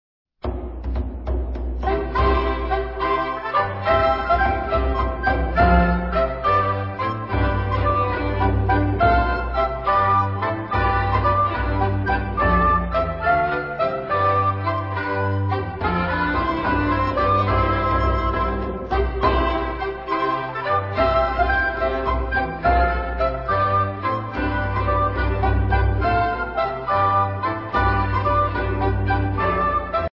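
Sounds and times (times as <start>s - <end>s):
baroque dance piece: 0.5s - 30.1s.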